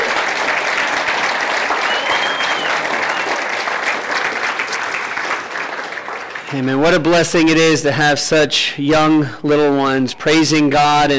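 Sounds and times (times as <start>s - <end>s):
audience applause for children: 0.0s - 7.2s
speech: 6.5s - 11.1s.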